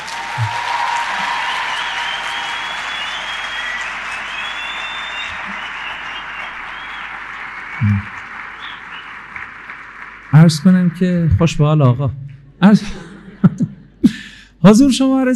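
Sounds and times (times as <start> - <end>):
audience applause at a speech in Persian: 0.0 - 11.6
laughter: 7.8 - 8.0, 12.7 - 13.9
speech: 10.4 - 13.1, 14.6 - 15.3.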